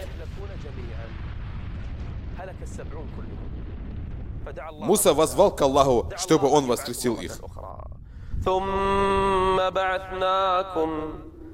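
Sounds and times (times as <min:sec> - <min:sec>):
rumbling thunder from a lightning strike: 0:00.0 - 0:11.5
speech: 0:02.4 - 0:07.8, 0:08.4 - 0:11.3.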